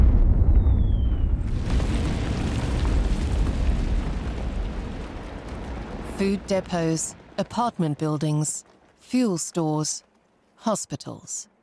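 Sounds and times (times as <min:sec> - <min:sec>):
German artillery bombarding a city: 0:00.0 - 0:06.5
speech: 0:06.2 - 0:11.5.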